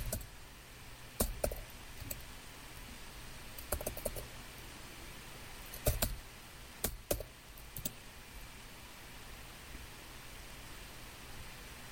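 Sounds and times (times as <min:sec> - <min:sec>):
typing on a computer keyboard: 0:00.0 - 0:00.3, 0:01.2 - 0:02.3, 0:03.6 - 0:04.3, 0:05.7 - 0:06.2, 0:06.8 - 0:08.0.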